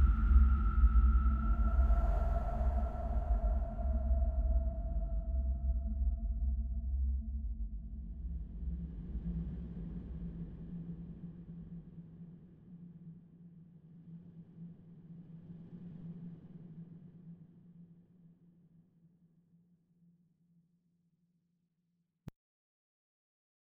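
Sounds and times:
dark ambience: 0:00.0 - 0:10.6.

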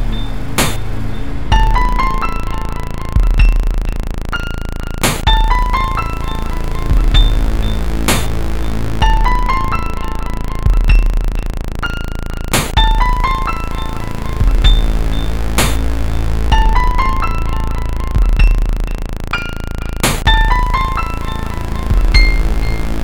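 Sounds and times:
horror music loop: 0:00.0 - 0:23.0.

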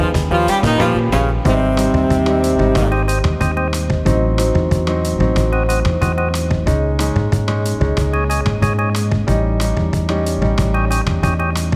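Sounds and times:
urban shop background music: 0:00.0 - 0:11.7.

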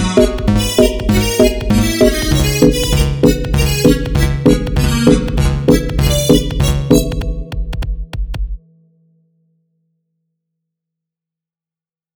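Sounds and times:
chiptune music: 0:00.0 - 0:08.6.

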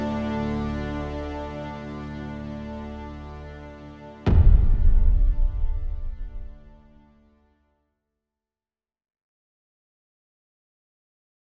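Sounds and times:
cinematic trailer music: 0:00.0 - 0:07.4.

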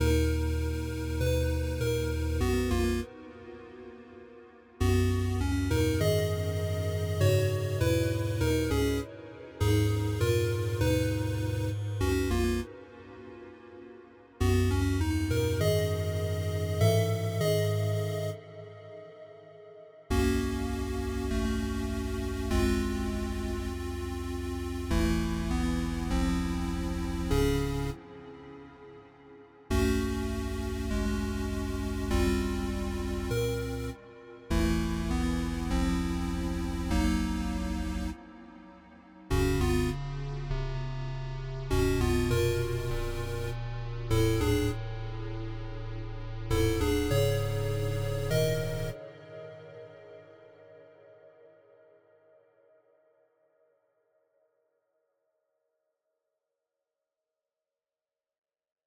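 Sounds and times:
8-bit dungeon music: 0:00.0 - 0:03.0, 0:04.8 - 0:09.0, 0:09.6 - 0:12.6, 0:14.4 - 0:18.4, 0:20.1 - 0:28.0, 0:29.7 - 0:38.2, 0:39.3 - 0:49.0.

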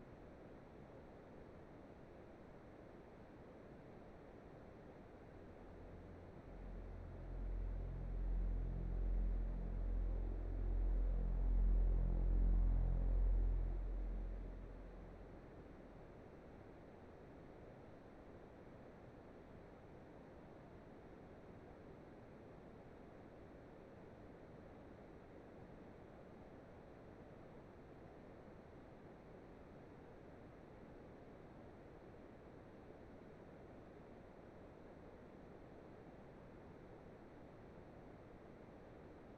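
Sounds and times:
ambience: 0:05.0 - 0:16.9.

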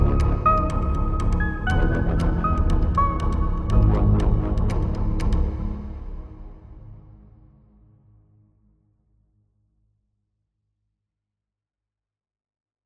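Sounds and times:
synthwave music: 0:00.0 - 0:07.0.

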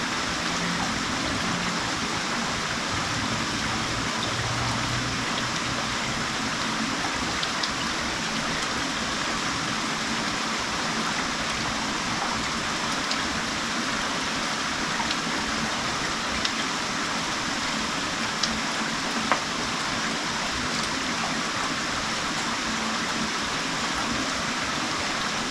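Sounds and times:
rain: 0:00.0 - 0:25.4.

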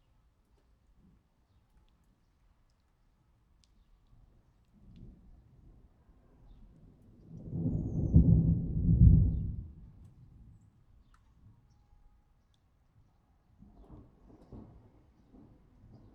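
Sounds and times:
thunder: 0:06.8 - 0:10.4, 0:13.8 - 0:16.1.

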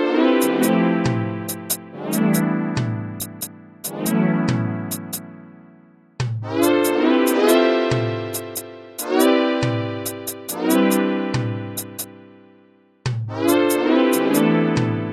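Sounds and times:
chill beat music: 0:00.2 - 0:05.6, 0:06.2 - 0:12.3, 0:13.1 - 0:15.1.

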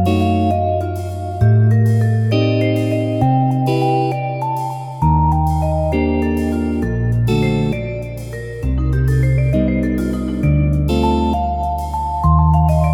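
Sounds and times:
jazz music: 0:00.0 - 0:12.9.

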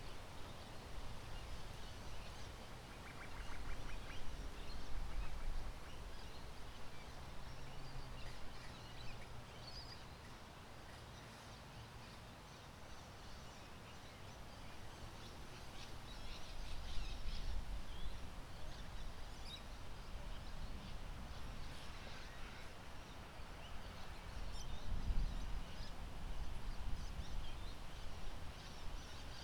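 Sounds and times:
wind in a park: 0:00.0 - 0:29.4.

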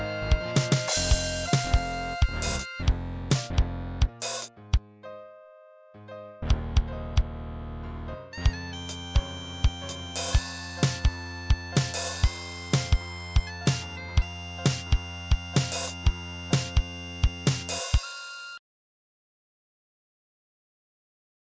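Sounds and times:
bagpipes: 0:00.0 - 0:03.0, 0:08.4 - 0:18.6
drums: 0:00.0 - 0:04.5, 0:08.7 - 0:18.2.

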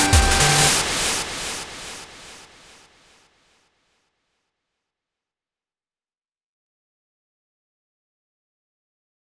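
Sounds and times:
desert-themed march music: 0:00.0 - 0:01.3.

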